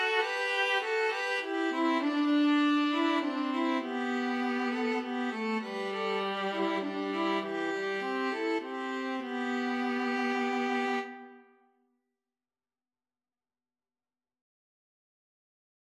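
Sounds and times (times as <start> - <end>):
string trio playing: 0.0 - 11.4.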